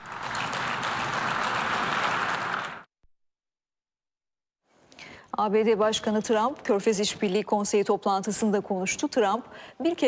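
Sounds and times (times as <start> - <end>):
applause from conference delegates: 0.0 - 2.9
speech: 5.4 - 10.0.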